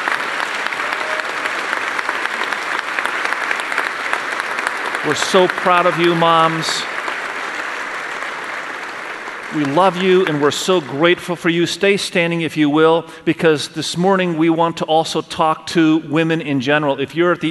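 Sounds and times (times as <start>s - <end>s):
audience applause in a church hall: 0.0s - 11.3s
speech: 5.0s - 6.9s, 9.5s - 17.4s.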